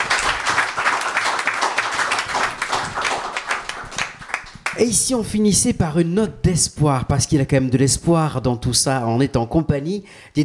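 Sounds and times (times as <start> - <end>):
crowd applauding: 0.0 - 4.9
speech: 4.8 - 10.4.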